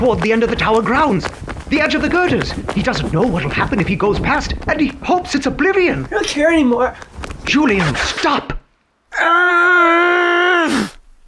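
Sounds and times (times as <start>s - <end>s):
speech: 0.0s - 8.6s
man screaming: 9.1s - 11.0s.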